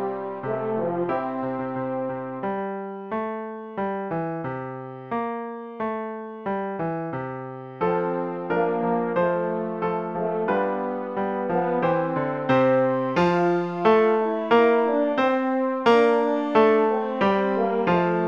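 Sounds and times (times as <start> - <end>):
French horn playing a hymn: 0.0 - 3.0, 7.8 - 18.2
piano accompanying a hymn: 0.0 - 18.2.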